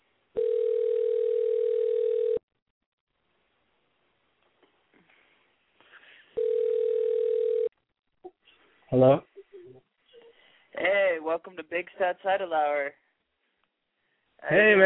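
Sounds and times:
telephone line ringing: 0.4s - 2.4s, 6.4s - 7.7s
speech: 8.9s - 9.3s, 11.4s - 13.0s, 14.4s - 14.8s.

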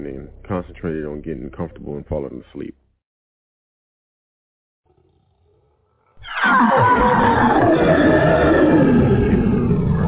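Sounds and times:
speech: 0.0s - 2.8s, 6.5s - 7.9s
menacing growling: 4.9s - 10.0s.

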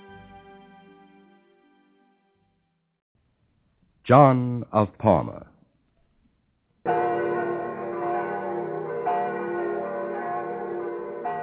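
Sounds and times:
speech: 4.1s - 5.5s
bells of Rome ringing in the distance: 6.9s - 11.4s.

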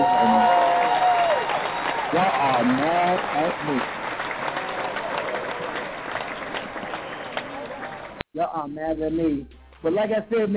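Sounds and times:
audience clapping at a Family Thanksgiving comedy show: 0.0s - 8.2s
speech: 2.2s - 4.0s, 8.6s - 10.5s.

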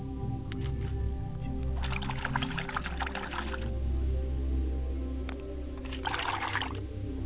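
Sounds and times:
steady low hum: 0.0s - 7.2s
water splashing while washing hands: 1.8s - 3.7s, 5.8s - 6.8s.

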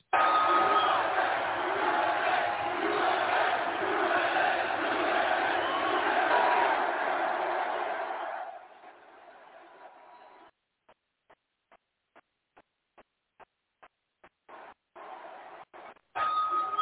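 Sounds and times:
stadium crowd of 80,000 cheering: 0.0s - 10.6s, 14.5s - 16.7s.

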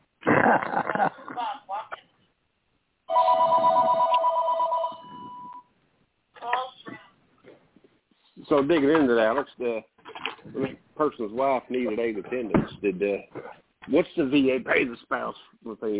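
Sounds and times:
speech: 0.5s - 1.8s, 8.5s - 15.9s
telephone ringing: 3.1s - 5.7s.

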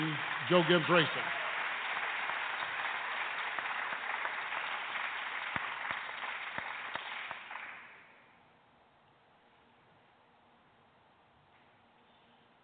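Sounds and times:
crowd applause: 0.0s - 8.0s
speech: 0.2s - 1.4s.

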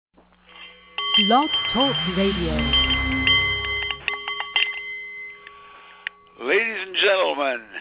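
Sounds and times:
Nepalese meditation bowl ringing: 0.5s - 6.6s
Big Ben chiming: 0.7s - 6.7s
speech: 1.2s - 2.9s, 6.4s - 7.7s.

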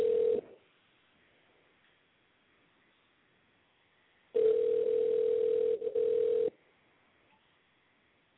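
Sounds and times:
telephone ringback tone: 0.0s - 0.4s, 4.4s - 6.5s.

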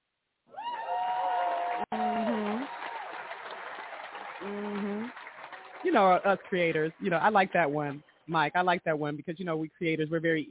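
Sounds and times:
hand clap: 1.9s - 6.5s
speech: 5.9s - 10.5s.

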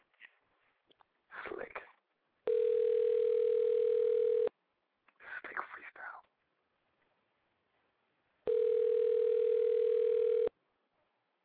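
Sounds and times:
soft whispering: 1.3s - 2.0s, 5.2s - 6.3s
outgoing phone call ringing tone: 2.5s - 4.5s, 8.5s - 10.5s.

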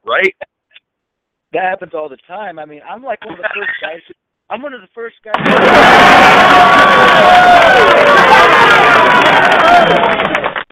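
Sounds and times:
speech: 0.1s - 0.5s, 1.5s - 10.4s
crowd cheering: 5.3s - 10.7s.

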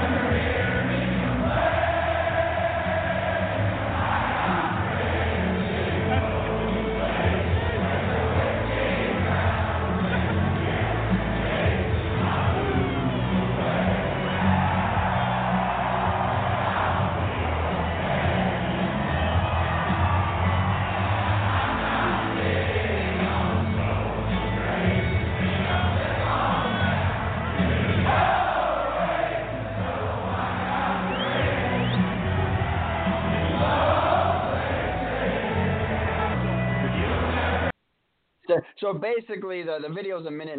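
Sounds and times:
stadium crowd at Arrowhead Stadium singing along at halftime: 0.0s - 37.8s
speech: 38.8s - 40.5s.

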